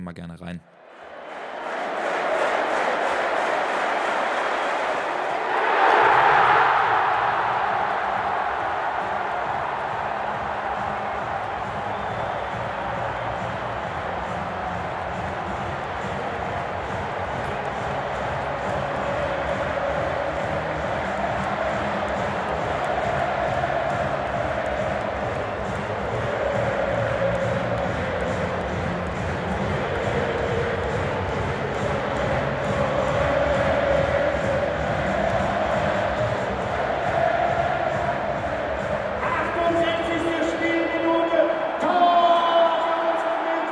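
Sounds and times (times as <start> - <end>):
stadium crowd cheering a goal: 0.7 - 43.7.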